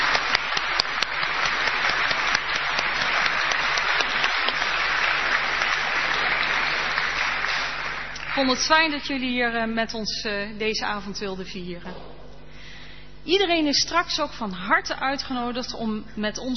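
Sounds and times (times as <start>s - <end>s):
audience applause: 0.0s - 8.8s
speech: 8.4s - 12.1s, 13.2s - 16.5s.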